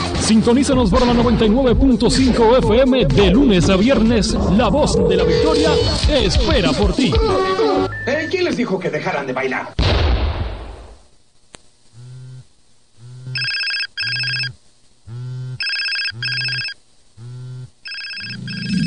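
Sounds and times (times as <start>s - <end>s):
speech: 0.3s - 10.0s
telephone ringing: 13.2s - 14.6s, 15.2s - 18.8s.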